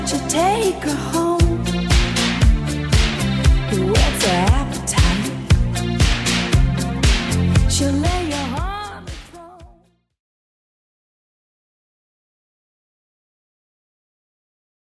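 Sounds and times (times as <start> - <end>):
80s music: 0.0 - 9.7.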